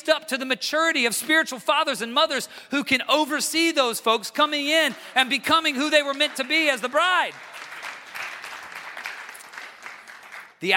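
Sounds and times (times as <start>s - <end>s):
speech: 0.0s - 7.5s, 10.6s - 10.7s
audience clapping: 4.8s - 10.7s.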